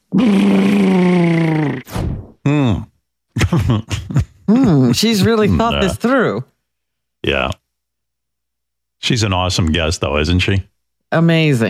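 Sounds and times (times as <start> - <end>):
voice imitating a cat purr by rolling R's: 0.1 - 1.9
speech: 0.2 - 0.6, 3.5 - 4.0, 4.6 - 6.5, 7.2 - 7.6, 9.0 - 11.6.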